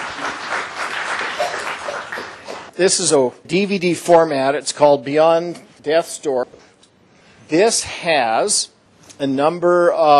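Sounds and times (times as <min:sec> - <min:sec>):
audience applause for a local filmmaker at a documentary presentation: 0:00.0 - 0:02.7
speech: 0:02.8 - 0:06.5, 0:07.5 - 0:10.1.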